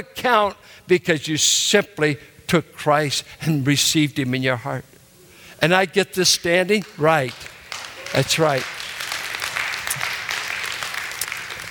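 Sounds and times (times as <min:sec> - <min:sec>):
speech: 0:00.0 - 0:04.9, 0:05.6 - 0:08.8
crowd applauding: 0:06.8 - 0:11.6.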